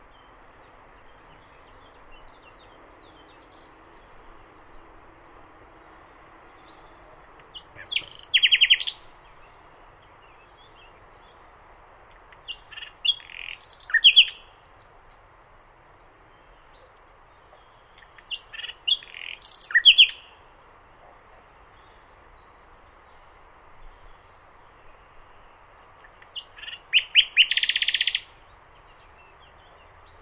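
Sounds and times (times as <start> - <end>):
common nightingale song: 1.3 - 9.6, 12.4 - 20.4, 26.0 - 30.2.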